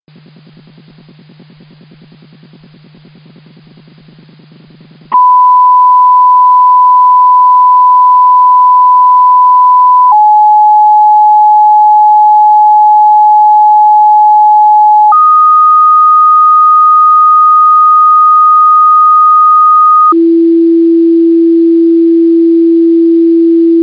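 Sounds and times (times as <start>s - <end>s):
D-STAR fixed tones: 5.1s - 23.7s.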